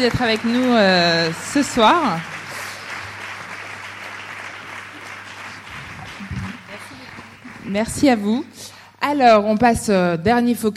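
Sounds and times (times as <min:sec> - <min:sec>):
speech: 0:00.0 - 0:02.4, 0:07.7 - 0:10.7
audience applause: 0:00.0 - 0:08.1.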